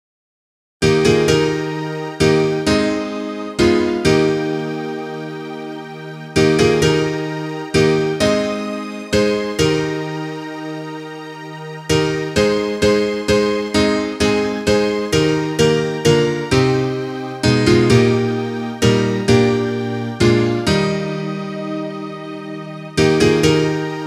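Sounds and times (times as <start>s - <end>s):
instrumental music: 0.8s - 24.0s.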